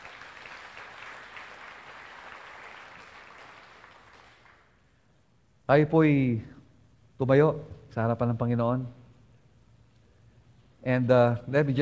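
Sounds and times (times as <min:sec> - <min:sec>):
church congregation applause: 0:00.0 - 0:04.8
speech: 0:05.7 - 0:06.5, 0:07.2 - 0:09.0, 0:10.8 - 0:11.8.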